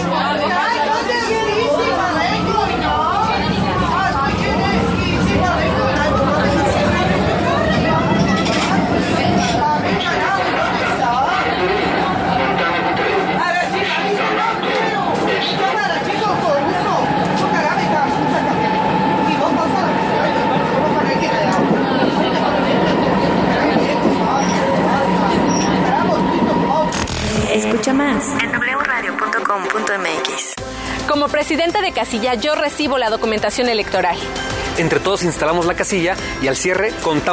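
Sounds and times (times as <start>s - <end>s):
crowd chatter in a Rome metro station: 0.0s - 37.3s
speech: 32.0s - 37.3s.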